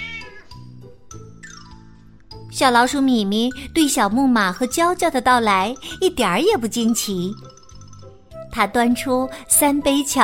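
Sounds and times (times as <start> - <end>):
cat meowing: 0.0 - 0.6
speech: 2.6 - 7.5, 8.6 - 10.2.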